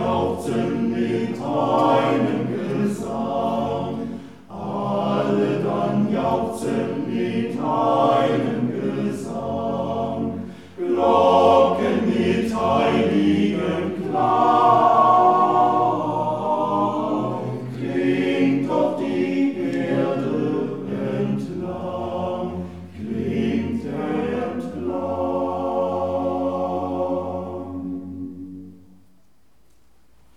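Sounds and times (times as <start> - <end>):
choir singing at an Advent concert: 0.0 - 29.1.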